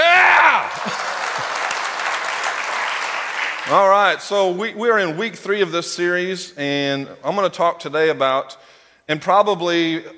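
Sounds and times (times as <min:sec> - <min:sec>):
audience clapping: 0:00.0 - 0:04.2
speech: 0:03.7 - 0:10.1.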